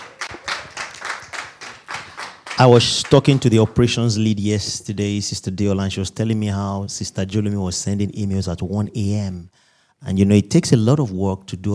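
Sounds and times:
round of applause: 0:00.0 - 0:04.0
speech: 0:02.6 - 0:11.7.

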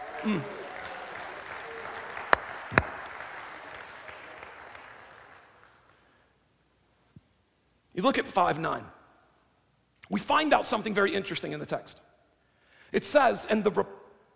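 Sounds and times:
audience hand clapping: 0:00.0 - 0:06.1
speech: 0:00.2 - 0:00.6, 0:08.0 - 0:09.0, 0:10.1 - 0:12.1, 0:12.9 - 0:13.9.

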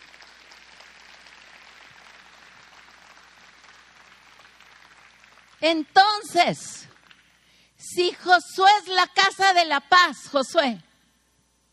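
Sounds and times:
audience applause: 0:00.0 - 0:05.6
speech: 0:05.6 - 0:06.9, 0:08.0 - 0:10.9.

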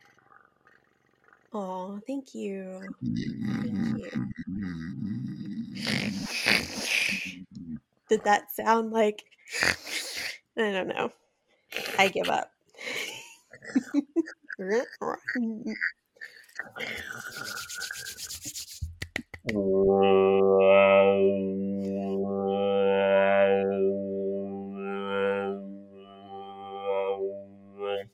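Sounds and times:
speech: 0:01.5 - 0:09.9, 0:10.6 - 0:11.2, 0:12.0 - 0:12.5, 0:13.6 - 0:16.0, 0:16.6 - 0:18.1, 0:19.4 - 0:24.0
voice imitating a didgeridoo: 0:02.7 - 0:07.8, 0:14.3 - 0:18.7, 0:19.5 - 0:28.1.

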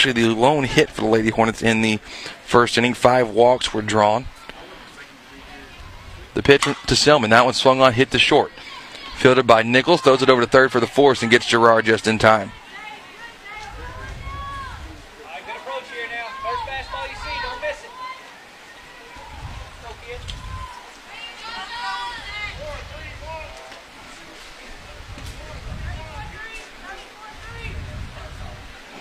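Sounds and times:
speech: 0:00.0 - 0:04.4, 0:06.4 - 0:12.6
rain on a tin roof on the Hudson home side: 0:00.0 - 0:28.9.

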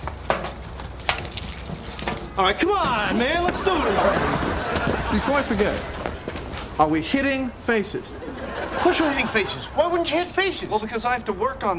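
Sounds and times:
keys and watches dropped into a hat: 0:00.0 - 0:02.4
speech: 0:02.4 - 0:06.2, 0:06.8 - 0:08.2, 0:08.8 - 0:11.7
laughter: 0:03.0 - 0:06.6, 0:07.8 - 0:10.9.

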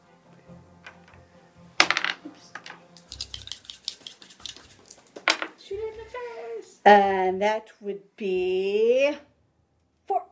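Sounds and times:
dice rattling on a hard table: 0:01.8 - 0:05.6
speech: 0:06.8 - 0:09.3.

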